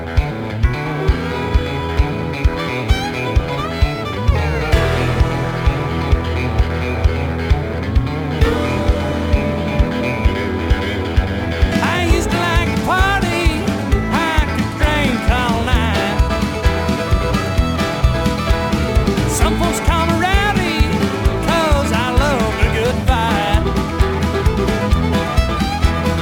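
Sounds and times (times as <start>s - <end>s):
honky-tonk music: 0.2s - 26.1s.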